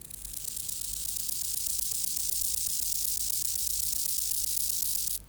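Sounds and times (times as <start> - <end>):
rufous grasshopper hissing buzz: 0.2 - 5.2.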